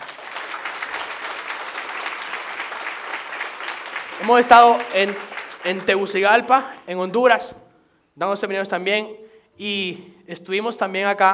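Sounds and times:
audience applause: 0.0 - 6.2
speech: 4.2 - 7.6, 8.2 - 11.3.

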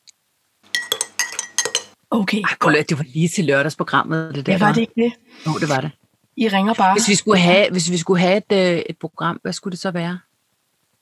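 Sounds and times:
spoon stirring coffee in a ceramic cup: 0.7 - 2.0
speech: 2.1 - 10.3.

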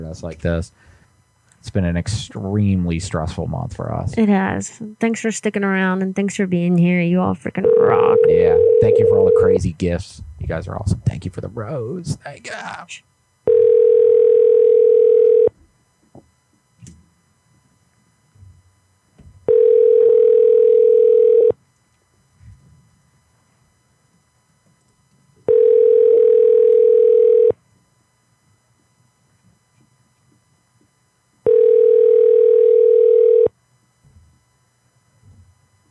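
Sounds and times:
speech: 0.0 - 1.0, 1.6 - 13.1
ringback tone of an outgoing phone call: 7.6 - 9.6, 13.4 - 15.6, 19.5 - 21.6, 25.5 - 27.6, 31.4 - 33.5.

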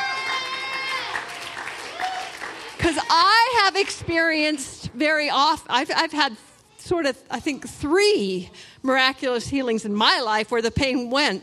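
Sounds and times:
crowd cheering: 0.0 - 4.0
applause: 0.0 - 4.6
speech: 2.9 - 11.4.

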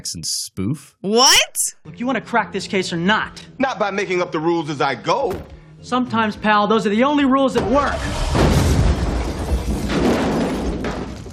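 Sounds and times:
speech: 0.0 - 8.5
car bomb explosion: 7.6 - 11.3.

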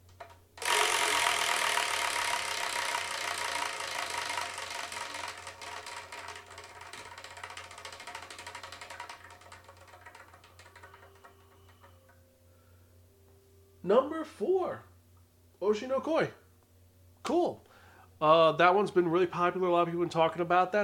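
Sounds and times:
Wheel of Manga prize wheel with ten slots spinning: 0.0 - 12.2
speech: 13.9 - 14.9, 15.6 - 16.4, 17.3 - 20.8.

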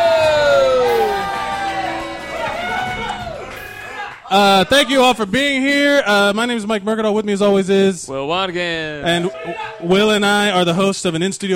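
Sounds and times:
live audience cheering and whooping: 0.0 - 5.0
speech: 4.3 - 11.5.

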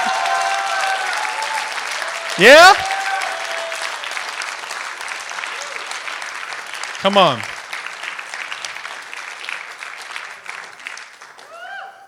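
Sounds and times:
audience applause: 0.0 - 12.0
speech: 2.4 - 2.9, 7.0 - 7.5.

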